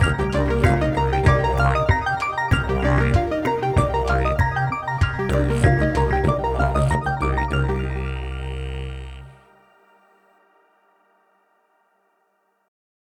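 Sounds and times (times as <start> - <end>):
gamelan music: 0.0 - 9.2.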